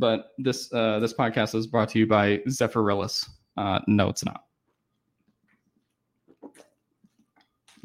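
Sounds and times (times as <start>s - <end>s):
speech: 0.0s - 4.5s
person gulping a drink of bottled water: 6.2s - 7.8s.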